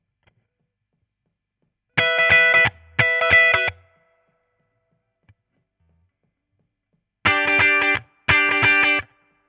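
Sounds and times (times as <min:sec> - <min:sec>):
guitar solo: 0:02.0 - 0:03.8, 0:07.3 - 0:09.2.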